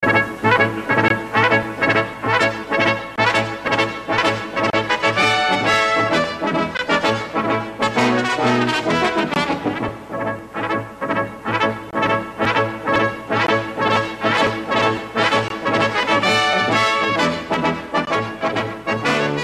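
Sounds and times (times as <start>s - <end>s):
brass instruments: 0.0s - 19.4s.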